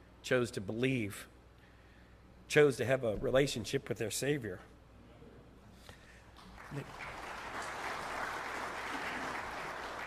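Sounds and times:
speech: 0.3s - 1.4s, 2.5s - 4.7s, 6.7s - 7.1s
crowd applauding: 6.4s - 10.0s.

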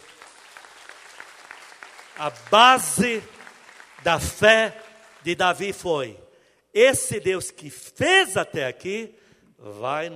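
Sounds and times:
audience applause: 0.0s - 5.4s
speech: 2.2s - 3.4s, 4.0s - 6.2s, 6.8s - 10.1s.

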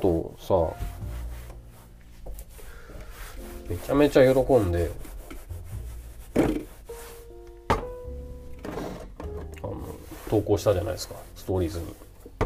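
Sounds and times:
speech: 0.0s - 0.9s, 3.7s - 5.1s, 10.3s - 12.0s
cloth wiping across a table: 0.6s - 7.4s, 9.8s - 12.4s.

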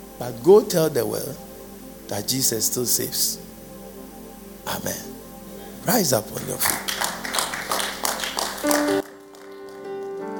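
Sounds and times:
speech: 0.2s - 1.5s, 2.1s - 3.6s, 4.7s - 5.1s, 5.8s - 7.0s
audience clapping: 6.4s - 10.3s.

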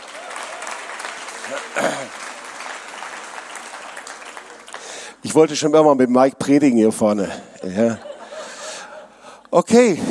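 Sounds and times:
crowd applauding: 0.0s - 5.4s
speech: 1.5s - 2.2s, 5.2s - 8.1s, 9.5s - 10.0s
laughter: 7.2s - 9.4s.

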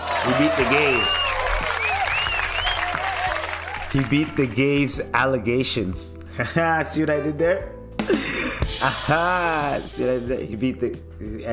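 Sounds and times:
round of applause: 0.0s - 4.6s
speech: 0.2s - 1.2s, 3.9s - 11.5s
thin high gliding whistle-like tones: 0.8s - 2.9s.

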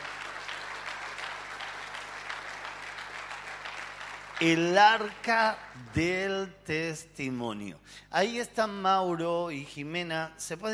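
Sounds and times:
applause: 0.0s - 6.9s
speech: 4.4s - 10.7s.

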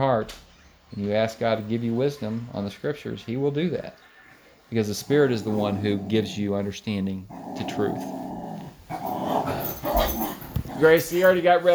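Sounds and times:
speech: 0.0s - 4.1s, 4.7s - 8.2s, 10.8s - 11.7s
dog growling: 5.0s - 11.2s
dog yipping: 9.6s - 10.6s.

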